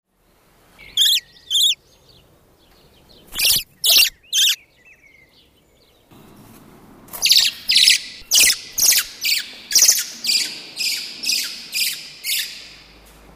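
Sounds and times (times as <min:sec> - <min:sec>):
Eurasian blackbird harsh chack calls: 0:01.0 - 0:01.8, 0:03.3 - 0:04.6, 0:07.2 - 0:12.5.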